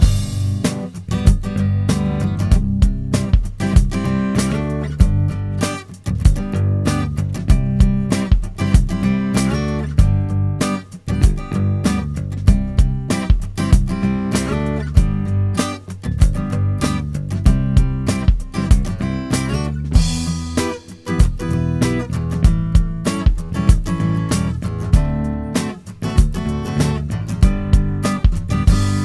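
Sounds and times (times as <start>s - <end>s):
laid-back music without keys: 0.0s - 29.0s.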